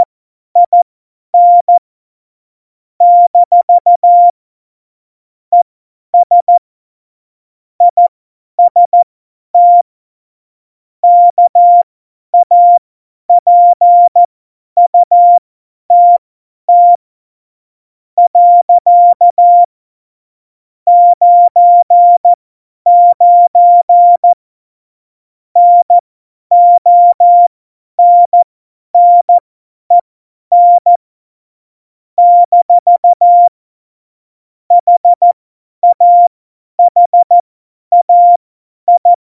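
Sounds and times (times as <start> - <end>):
CW morse code beeps: 0.0 - 0.8, 1.4 - 1.8, 3.0 - 4.3, 6.2 - 6.6, 7.8 - 8.1, 8.7 - 9.0, 9.6 - 9.8, 11.0 - 11.8, 12.4 - 12.8, 13.4 - 14.3, 14.9 - 17.0, 18.2 - 19.7, 20.9 - 22.3, 22.9 - 24.4, 25.6 - 31.0, 32.2 - 33.6, 34.7 - 39.1.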